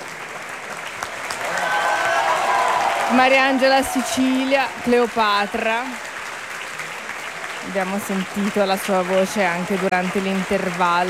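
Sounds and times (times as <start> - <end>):
opera audience clapping at the Teatro del Maggio Musicale Fiorentino: 0.0 - 11.0
speech: 3.1 - 6.1, 7.6 - 11.0.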